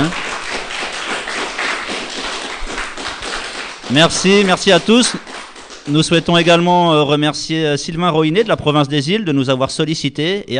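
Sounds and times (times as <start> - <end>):
audience applauding in a hall: 0.0 - 6.7
speech: 3.9 - 5.3, 5.9 - 10.5.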